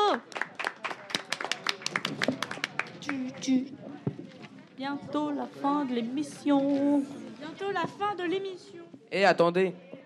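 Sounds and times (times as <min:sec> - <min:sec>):
applause: 0:00.0 - 0:03.3
speech: 0:03.5 - 0:03.9, 0:04.8 - 0:09.9.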